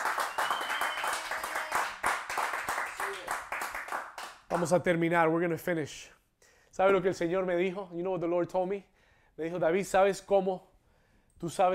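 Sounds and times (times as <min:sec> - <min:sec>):
audience applauding: 0:00.0 - 0:04.8
speech: 0:04.5 - 0:06.2, 0:06.8 - 0:10.7, 0:11.4 - 0:11.7.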